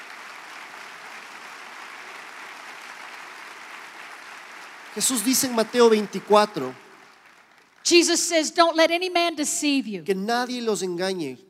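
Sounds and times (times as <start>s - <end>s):
audience applauding: 0.0s - 8.2s
speech: 5.0s - 6.8s, 7.9s - 11.4s.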